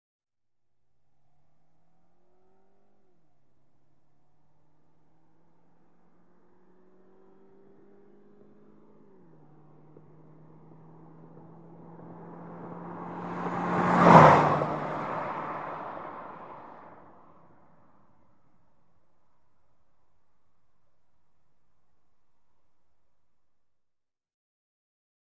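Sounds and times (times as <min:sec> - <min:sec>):
sedan passing by left to right at 100mph: 0:06.8 - 0:17.9.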